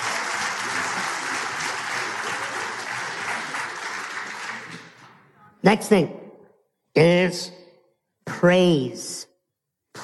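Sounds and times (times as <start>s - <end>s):
audience applause: 0.0s - 5.0s
speech: 5.6s - 6.2s, 7.0s - 7.6s, 8.4s - 9.3s.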